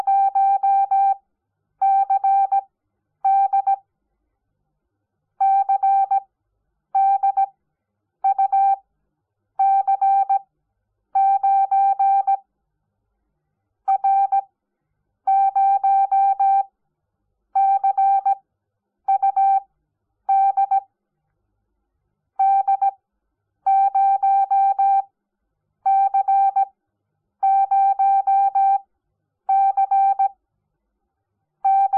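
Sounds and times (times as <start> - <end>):
morse code beeps: 0.0 - 1.2, 1.8 - 2.6, 3.3 - 3.8, 5.4 - 6.2, 7.0 - 7.5, 8.3 - 8.8, 9.6 - 10.4, 11.2 - 12.4, 13.9 - 14.4, 15.3 - 16.6, 17.6 - 18.4, 20.3 - 20.8, 22.4 - 22.9, 23.7 - 25.0, 25.9 - 26.7, 27.4 - 28.8, 29.5 - 30.4, 31.7 - 31.9.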